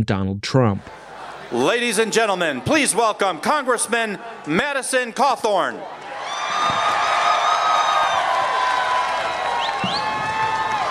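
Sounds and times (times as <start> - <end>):
speech: 0.0 - 6.9
rally crowd cheering: 0.9 - 10.8
shrill whoops and whistles: 9.5 - 10.8.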